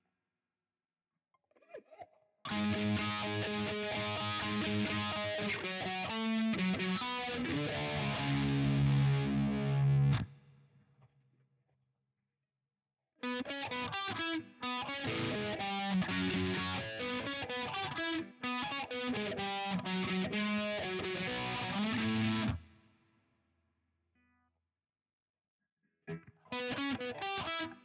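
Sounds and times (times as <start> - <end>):
guitar: 1.4 - 11.3, 13.2 - 23.0, 25.8 - 27.8.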